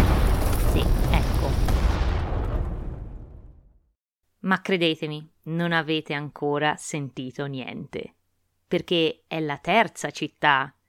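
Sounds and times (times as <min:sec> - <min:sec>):
explosion blasting away a mountain with crackling debris: 0:00.0 - 0:03.9
heavy low rumble after a mountain blast: 0:00.0 - 0:03.9
speech: 0:04.5 - 0:10.8.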